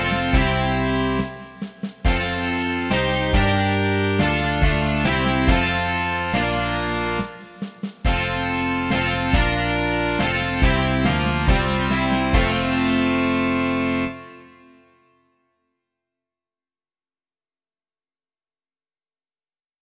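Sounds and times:
rock music: 0.0s - 14.8s.

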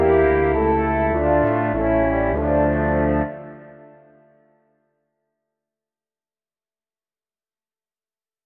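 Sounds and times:
trio of French horns and tuba: 0.0s - 4.0s.

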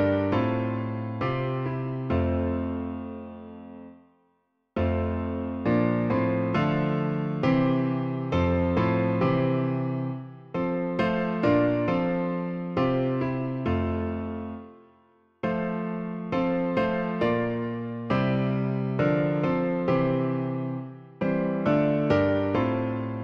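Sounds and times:
hymn played on piano: 0.0s - 4.0s, 4.8s - 23.2s.

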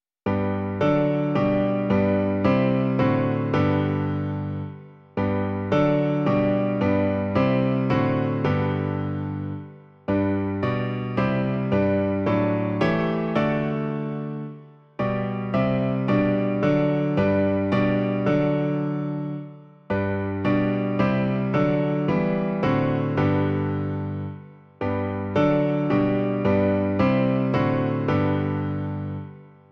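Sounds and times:
piano version: 0.3s - 29.7s.

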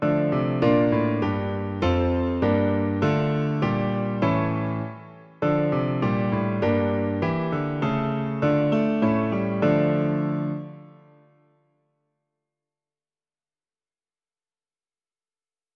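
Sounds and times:
piano: 0.0s - 11.9s.

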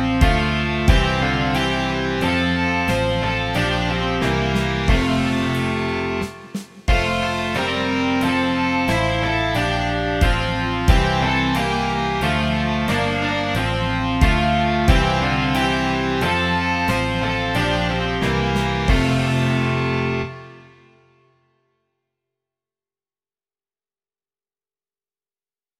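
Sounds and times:
rock music: 0.0s - 20.6s.

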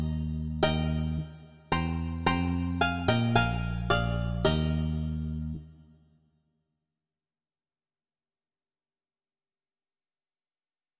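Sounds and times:
banjo: 0.0s - 5.7s
bass guitar: 0.0s - 5.8s.

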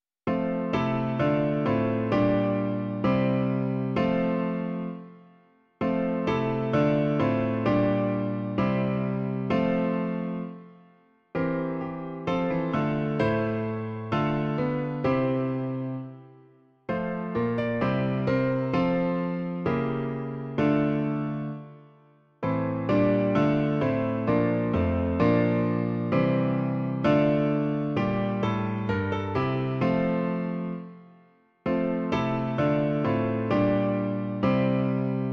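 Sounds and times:
piano: 0.0s - 35.3s.

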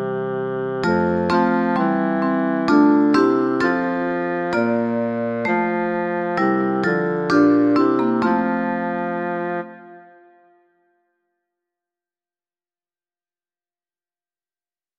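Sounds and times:
bassoon: 0.0s - 10.8s
vibraphone: 0.8s - 9.8s.

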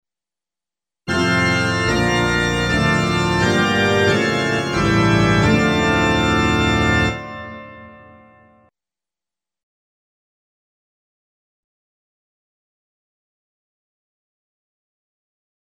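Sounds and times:
musical accompaniment: 1.1s - 8.7s.

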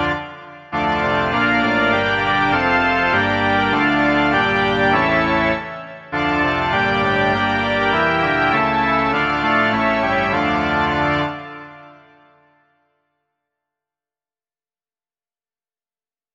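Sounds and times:
organ: 0.0s - 12.4s.

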